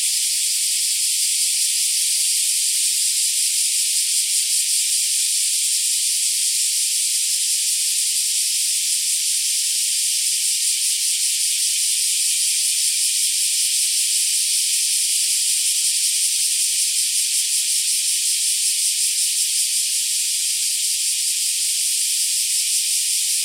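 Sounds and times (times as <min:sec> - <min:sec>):
black cicadas sustaining a hissing electric-sounding drone: 0:00.0 - 0:23.4.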